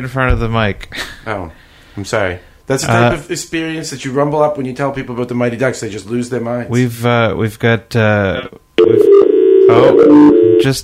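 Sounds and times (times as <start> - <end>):
speech: 0.0 - 10.8
voice over phone line: 8.4 - 10.8
buzzing telephone tones: 8.8 - 10.8.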